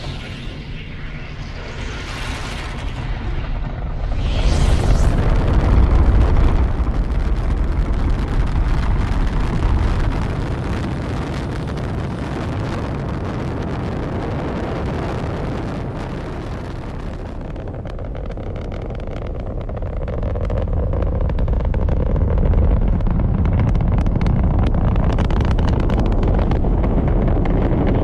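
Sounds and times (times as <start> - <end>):
rocket launch roaring with crackling rumble and hissing: 0.0 - 28.0.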